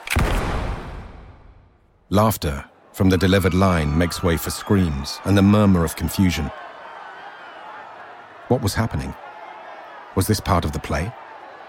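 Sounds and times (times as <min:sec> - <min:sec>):
single gunshot: 0:00.0 - 0:01.7
speech: 0:02.1 - 0:06.6, 0:08.5 - 0:09.2, 0:10.2 - 0:11.2.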